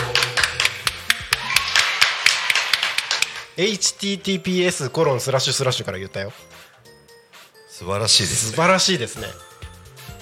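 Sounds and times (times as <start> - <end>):
applause: 0.0 - 3.5
speech: 3.6 - 6.6, 7.8 - 9.5.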